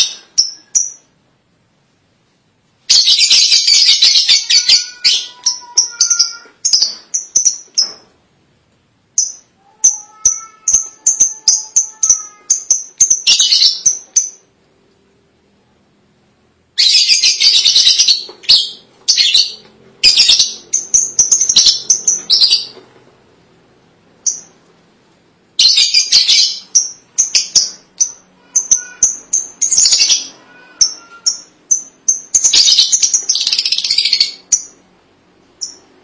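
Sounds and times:
lovebird high chirps: 0.0 - 1.1, 2.9 - 8.0, 9.2 - 14.5, 16.8 - 22.8, 24.2 - 24.6, 25.6 - 34.8, 35.6 - 35.9.

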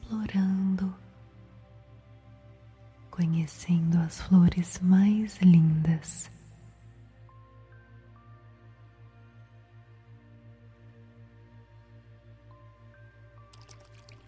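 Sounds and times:
speech: 0.1 - 0.6, 3.2 - 6.4
water fountain trickling: 13.5 - 14.2.

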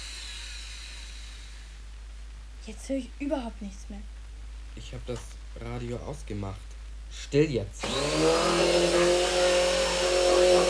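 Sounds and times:
speech: 2.6 - 4.2, 4.8 - 9.2
power drill drilling: 7.8 - 10.6.

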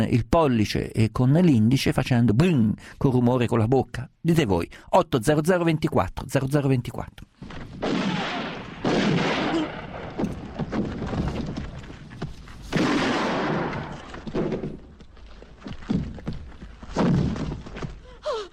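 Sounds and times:
speech: 0.0 - 8.1
heavy explosive thuds: 7.4 - 15.1, 15.8 - 18.0
film shootout gunfire sound effects: 7.8 - 11.6, 12.7 - 14.8.

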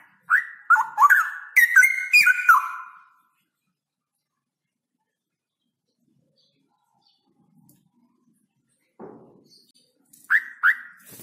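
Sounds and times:
straw-headed bulbul song: 0.3 - 3.1, 10.3 - 11.0.

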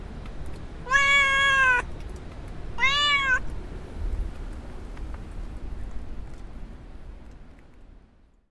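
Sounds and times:
little domestic cat meowing in a village in Portugal: 0.8 - 1.9, 2.8 - 3.5.

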